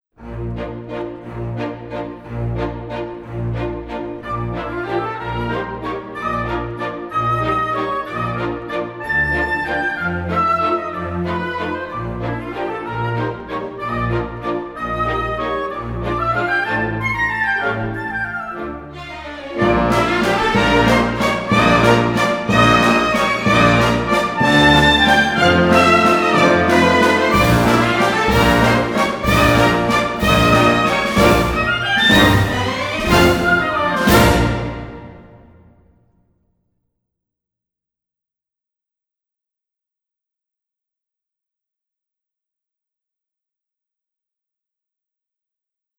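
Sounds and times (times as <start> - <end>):
ballet music: 0.2 - 35.8.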